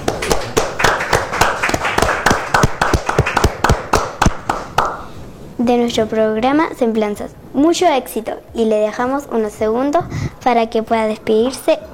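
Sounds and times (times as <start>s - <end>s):
small group applauding: 0.0s - 5.1s
speech: 5.6s - 11.9s.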